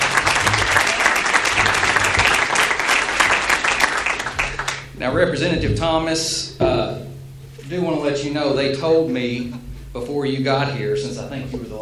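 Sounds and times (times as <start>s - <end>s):
audience clapping for the state park staff: 0.0s - 5.0s
speech: 5.0s - 7.1s, 7.7s - 11.8s.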